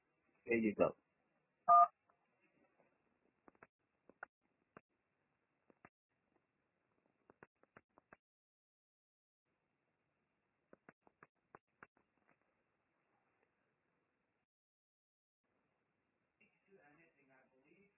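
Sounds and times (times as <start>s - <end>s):
speech: 0.4s - 1.0s, 1.7s - 2.0s
telephone keypad beeps: 1.7s - 1.9s.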